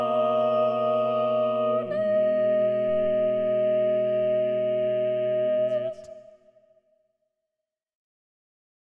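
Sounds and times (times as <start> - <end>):
SATB alto voice singing: 0.0 - 6.3.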